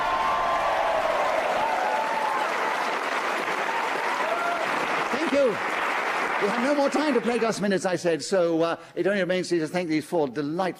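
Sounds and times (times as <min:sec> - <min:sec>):
audience round of applause: 0:00.0 - 0:07.8
speech: 0:06.4 - 0:10.7.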